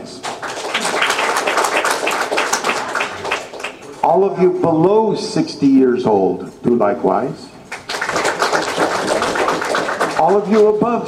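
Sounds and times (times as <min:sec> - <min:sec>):
crowd clapping: 0:00.0 - 0:04.0, 0:07.7 - 0:10.8
speech: 0:04.1 - 0:07.5, 0:10.2 - 0:11.0.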